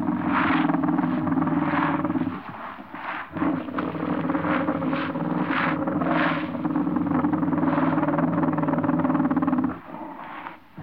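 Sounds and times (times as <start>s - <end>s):
common warthog growling and snarling: 0.0s - 10.8s.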